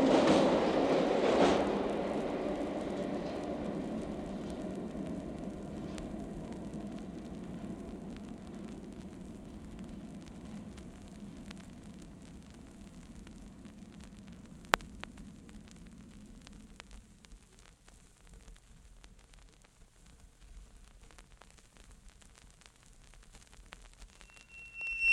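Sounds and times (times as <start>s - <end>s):
train arriving and departing: 0.0s - 12.8s.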